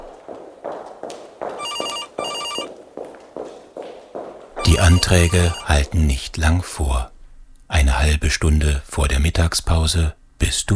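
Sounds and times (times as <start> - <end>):
footsteps on hard floor: 0.0 - 6.0
trilling telephone bell ringing: 1.6 - 2.7, 4.6 - 5.7
speech: 4.8 - 7.2, 7.8 - 10.7.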